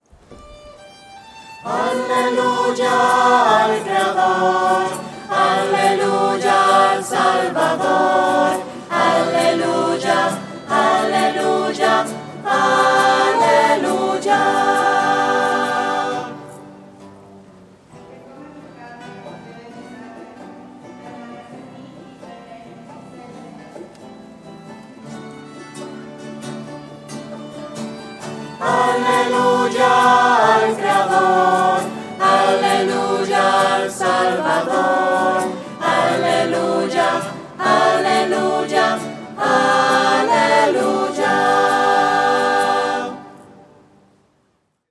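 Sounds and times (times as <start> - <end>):
voices singing hallelujah to the creator: 1.6 - 16.8, 28.4 - 43.8.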